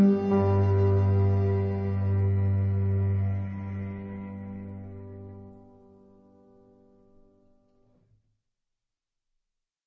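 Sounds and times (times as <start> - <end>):
waltz music: 0.0 - 5.6.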